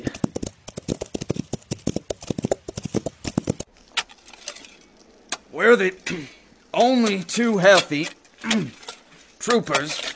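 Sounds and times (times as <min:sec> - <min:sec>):
horses galloping: 0:00.0 - 0:03.8
speech: 0:05.6 - 0:08.8, 0:09.4 - 0:10.1.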